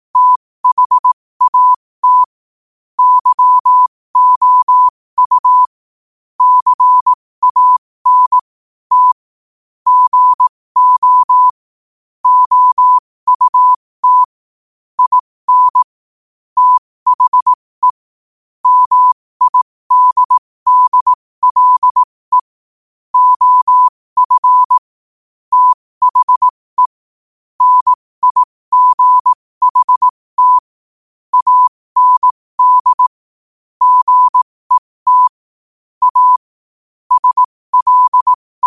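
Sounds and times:
morse code at 5 wpm: 0.2 - 2.4, 3.0 - 5.8, 6.4 - 9.2, 9.9 - 11.6, 12.2 - 14.3, 15.0 - 16.0, 16.6 - 18.0, 18.6 - 22.6, 23.2 - 24.9, 25.5 - 27.0, 27.6 - 30.7, 31.3 - 33.2, 33.8 - 35.4, 36.0 - 36.5, 37.1 - 38.6.

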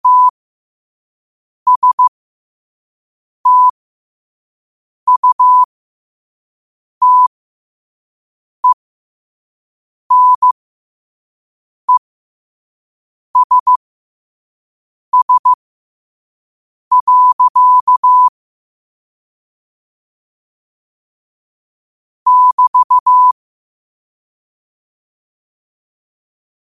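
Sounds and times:
morse code at 5 wpm: 0.0 - 0.3, 1.7 - 2.1, 3.5 - 3.7, 5.1 - 5.7, 7.0 - 7.3, 10.1 - 10.6, 13.4 - 13.8, 15.2 - 15.6, 16.9 - 18.3, 22.3 - 23.4.

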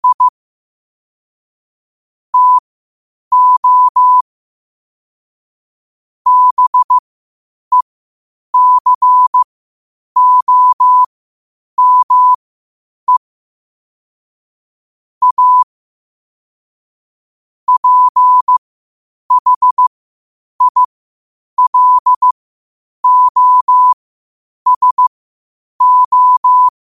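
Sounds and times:
morse code at 5 wpm: 0.0 - 0.3, 2.4 - 2.6, 3.3 - 4.2, 6.3 - 7.0, 8.6 - 9.4, 10.2 - 11.1, 11.8 - 12.4, 15.2 - 15.7, 17.7 - 18.6, 19.3 - 19.9, 20.6 - 20.9, 21.6 - 22.4, 23.0 - 24.0, 24.7 - 25.1, 25.8 - 26.7.

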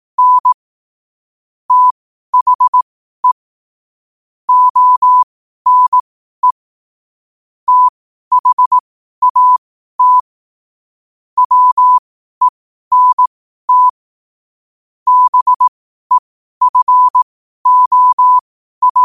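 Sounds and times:
morse code at 5 wpm: 0.2 - 0.6, 1.7 - 3.4, 4.5 - 6.6, 7.7 - 10.2, 11.4 - 13.9, 15.1 - 15.7, 16.6 - 19.0.

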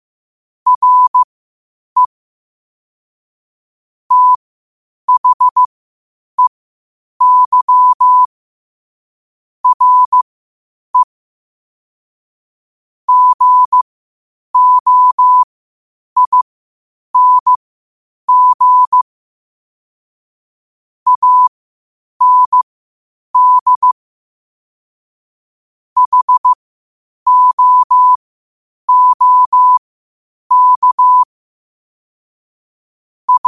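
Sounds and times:
morse code at 5 wpm: 0.7 - 1.3, 4.1 - 4.4, 5.1 - 5.7, 7.2 - 8.3, 9.6 - 10.2, 13.1 - 13.8, 14.6 - 15.5, 16.2 - 16.4, 17.2 - 17.6, 18.3 - 19.0, 21.1 - 21.5, 22.2 - 22.6, 23.4 - 24.0, 26.0 - 26.6, 27.3 - 28.2, 28.9 - 29.8, 30.5 - 31.3, 33.3 - 33.4.

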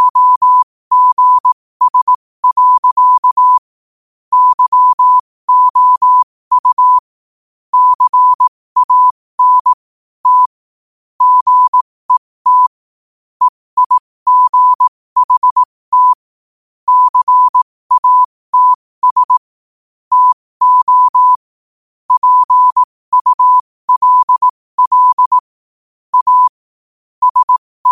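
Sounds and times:
morse code at 5 wpm: 0.0 - 3.7, 4.3 - 7.1, 7.7 - 10.6, 11.2 - 12.7, 13.4 - 16.2, 16.9 - 19.5, 20.1 - 21.4, 22.1 - 25.5, 26.1 - 26.6, 27.2 - 27.9.

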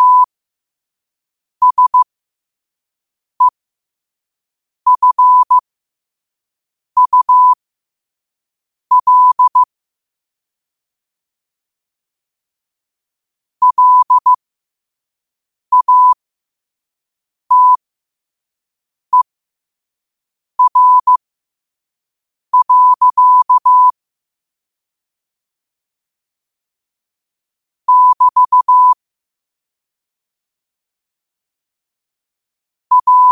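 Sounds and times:
morse code at 5 wpm: 0.0 - 0.3, 1.6 - 2.1, 4.9 - 5.6, 7.0 - 7.6, 8.9 - 9.7, 13.6 - 14.4, 15.7 - 16.2, 17.5 - 17.8, 20.6 - 21.2, 22.6 - 23.9, 27.9 - 29.0, 32.9 - 33.3.

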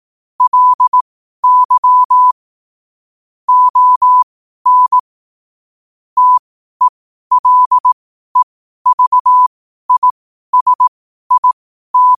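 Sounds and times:
morse code at 5 wpm: 0.4 - 2.3, 3.5 - 5.0, 6.2 - 12.1.

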